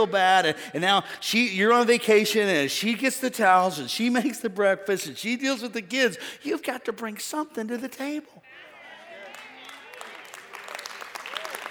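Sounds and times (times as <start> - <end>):
speech: 0.0 - 8.5
weak sparse audience clapping: 9.1 - 11.6.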